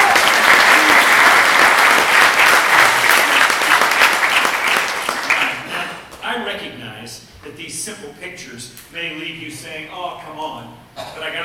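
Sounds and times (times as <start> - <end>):
audience round of applause: 0.0 - 5.7
speech: 9.6 - 11.4.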